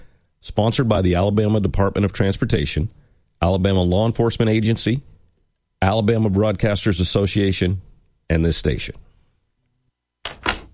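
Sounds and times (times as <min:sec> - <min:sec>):
speech: 0:00.6 - 0:05.1, 0:05.8 - 0:09.0
door lock being turned and locked: 0:10.2 - 0:10.7.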